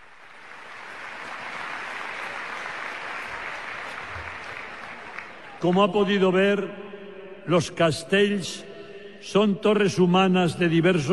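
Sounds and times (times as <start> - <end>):
audience applause for a castellers group after a human tower: 0.0 - 5.8
speech: 5.6 - 11.1.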